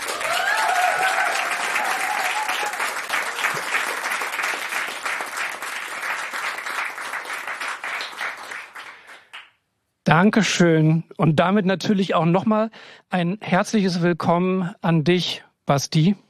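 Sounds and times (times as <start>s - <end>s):
enthusiastic studio audience applause: 0.0s - 9.6s
speech: 10.2s - 16.2s.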